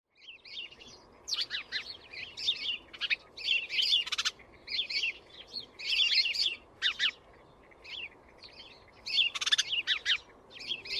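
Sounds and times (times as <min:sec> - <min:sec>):
House sparrow Passer domesticus chirping shrill notes: 0:00.1 - 0:10.9.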